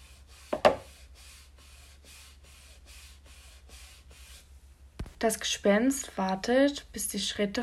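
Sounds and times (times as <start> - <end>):
hands rubbing on a surface: 0.0 - 4.5
speech: 5.2 - 7.6.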